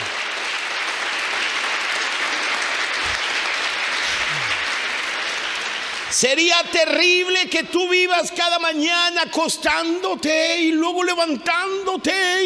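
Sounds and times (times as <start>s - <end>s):
audience applause: 0.0s - 6.5s
speech: 6.2s - 12.4s.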